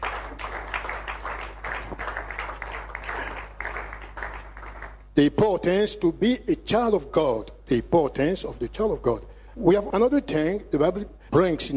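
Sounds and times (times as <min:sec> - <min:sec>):
audience clapping: 0:00.0 - 0:05.1
speech: 0:05.2 - 0:11.7.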